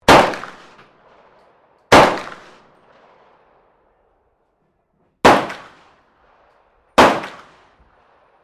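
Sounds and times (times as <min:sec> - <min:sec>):
357 automatic pistol firing: 0:00.0 - 0:03.5, 0:05.2 - 0:08.4.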